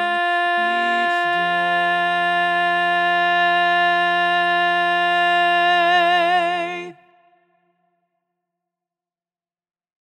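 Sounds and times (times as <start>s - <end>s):
learning track singing with dominant lead part: 0.0s - 7.3s.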